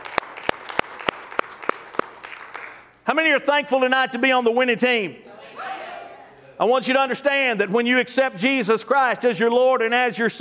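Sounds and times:
audience hand clapping: 0.0 - 3.0
speech: 3.1 - 5.2, 6.6 - 10.3.

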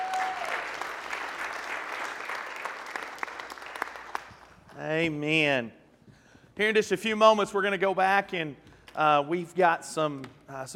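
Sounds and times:
audience clapping: 0.0 - 4.9
speech: 4.8 - 5.8, 6.6 - 10.7.

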